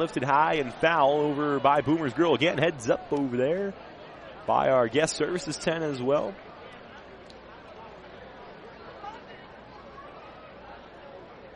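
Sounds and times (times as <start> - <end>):
speech: 0.0 - 3.9, 4.5 - 6.5
ballpark crowd chatter: 0.0 - 11.5.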